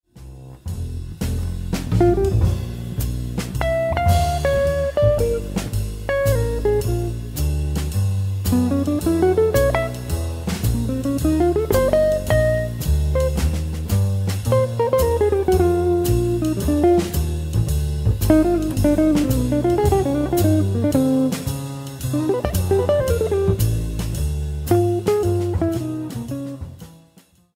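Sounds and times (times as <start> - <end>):
blues music: 0.2 - 27.1.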